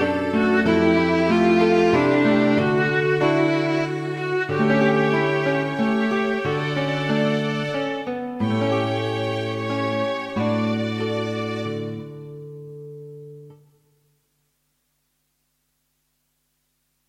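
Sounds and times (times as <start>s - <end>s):
fusion music: 0.0s - 13.6s.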